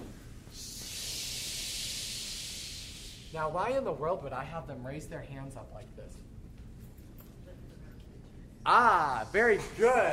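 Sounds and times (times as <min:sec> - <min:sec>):
group breathing in: 0:00.5 - 0:03.4
speech: 0:03.3 - 0:06.4, 0:08.6 - 0:10.1.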